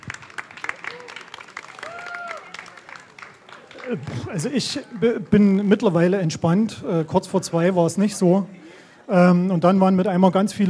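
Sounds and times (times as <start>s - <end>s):
audience applause: 0.0s - 5.2s
speech: 3.9s - 10.6s.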